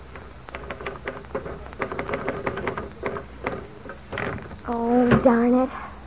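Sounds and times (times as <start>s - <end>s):
typing on an old typewriter: 0.0s - 4.5s
speech: 4.7s - 5.8s.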